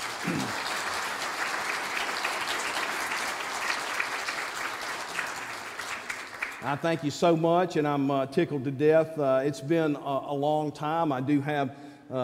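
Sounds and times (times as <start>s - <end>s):
audience round of applause: 0.0s - 6.8s
speech: 6.6s - 12.2s.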